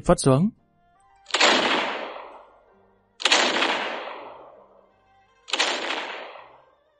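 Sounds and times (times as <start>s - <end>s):
naval cannon fire: 1.3s - 2.5s, 3.2s - 4.7s, 5.5s - 6.6s.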